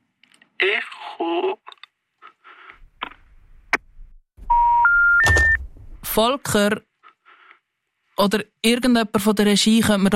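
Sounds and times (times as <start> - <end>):
telephone call disconnect beeps: 4.5 - 5.6
speech: 6.2 - 6.9, 8.2 - 10.1.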